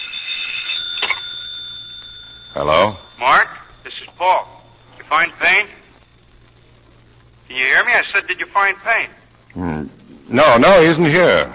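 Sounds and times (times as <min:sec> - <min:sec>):
telephone ringing: 0:00.0 - 0:06.5
speech: 0:02.6 - 0:05.8, 0:07.5 - 0:11.5.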